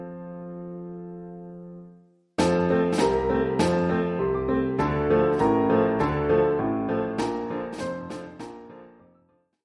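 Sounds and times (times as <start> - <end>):
piano: 0.0 - 9.6
snare drum: 2.4 - 4.0, 7.2 - 8.7.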